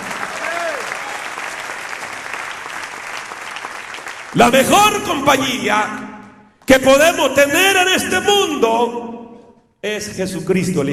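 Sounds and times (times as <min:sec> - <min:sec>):
audience applause: 0:00.0 - 0:04.7
speech: 0:04.4 - 0:06.0, 0:06.7 - 0:09.0, 0:09.8 - 0:10.9.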